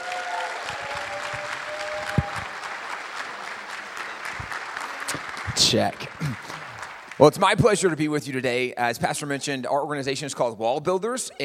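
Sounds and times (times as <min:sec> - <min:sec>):
audience applause welcoming a guest speaker at a summit gathering: 0:00.0 - 0:08.2
speech: 0:05.6 - 0:06.6, 0:07.2 - 0:11.4.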